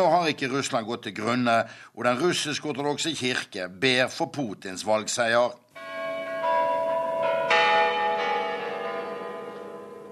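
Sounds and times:
speech: 0.0s - 5.9s
Kremlin Savior Tower clock bells chiming: 5.8s - 10.0s.

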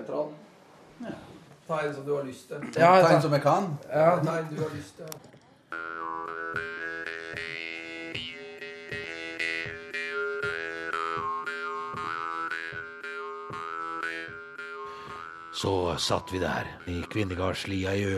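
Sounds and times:
speech: 0.1s - 5.8s, 15.6s - 18.1s
jaw harp being played: 5.6s - 18.1s.

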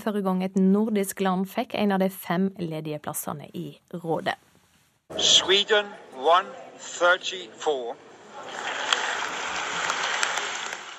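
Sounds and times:
speech: 0.0s - 4.5s, 5.1s - 8.7s
large crowd applauding in assembly hall: 8.3s - 10.9s.

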